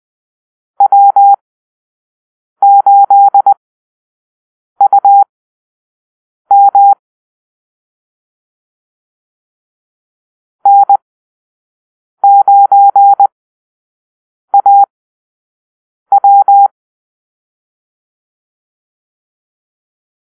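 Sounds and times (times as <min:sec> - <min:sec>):
morse code call-sign beeps: 0:00.8 - 0:01.4, 0:02.6 - 0:03.6, 0:04.8 - 0:05.3, 0:06.5 - 0:07.0, 0:10.6 - 0:11.0, 0:12.2 - 0:13.3, 0:14.6 - 0:14.9, 0:16.1 - 0:16.7.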